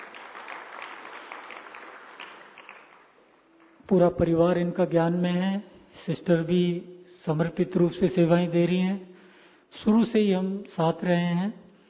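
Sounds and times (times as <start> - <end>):
audience applauding: 0.0 - 3.8
speech: 3.9 - 9.1, 9.7 - 11.6.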